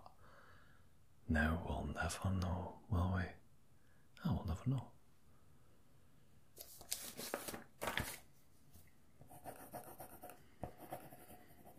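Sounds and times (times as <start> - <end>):
speech: 1.3 - 3.4, 4.2 - 4.9
pen writing notes on paper: 9.3 - 11.7.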